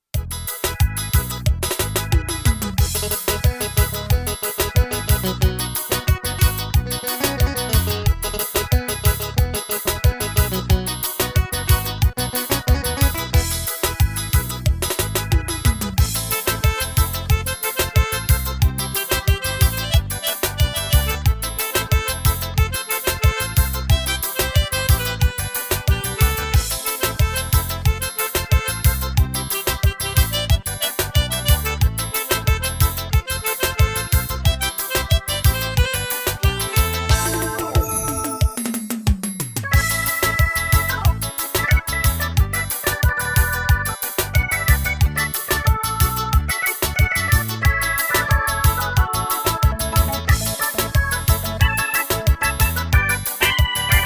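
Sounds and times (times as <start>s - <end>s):
Korg Pa500 keyboard rhythm patterns: 0.0s - 54.0s.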